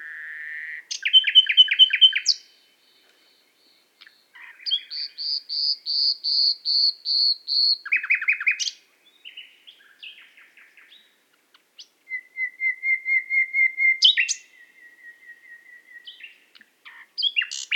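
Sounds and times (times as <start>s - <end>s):
nightingale singing: 0.1s - 2.5s, 4.1s - 11.0s, 12.1s - 16.4s, 17.2s - 17.7s.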